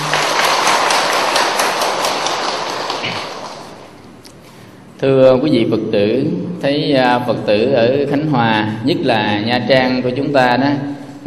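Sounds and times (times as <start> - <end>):
crowd applauding: 0.0 - 3.8
speech: 5.0 - 11.2.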